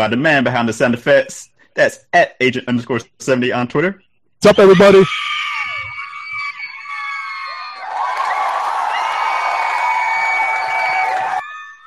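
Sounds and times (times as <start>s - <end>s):
speech: 0.0s - 5.4s
crowd cheering with whoops and screams: 4.6s - 11.8s
audience applause: 6.8s - 11.5s.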